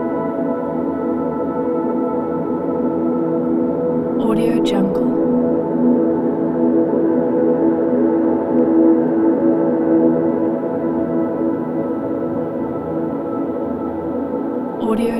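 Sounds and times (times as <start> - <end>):
peaceful ambient soundscape: 0.0 - 15.1.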